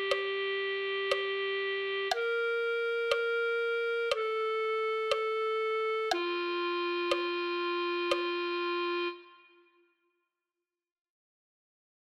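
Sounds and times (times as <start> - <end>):
clarinet: 0.0 - 9.9.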